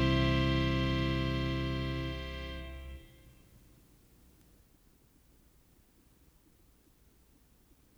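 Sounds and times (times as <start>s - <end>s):
Christmas organ: 0.0s - 3.2s.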